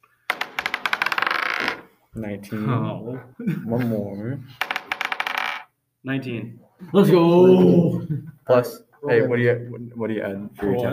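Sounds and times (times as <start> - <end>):
dice clattering across a tabletop: 0.3 - 1.9, 4.6 - 5.7
speech: 2.1 - 4.7, 6.0 - 10.9.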